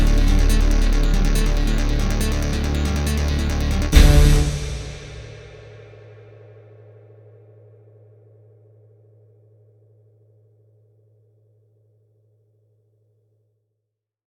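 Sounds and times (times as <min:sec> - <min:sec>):
synthesizer: 0:00.0 - 0:05.6.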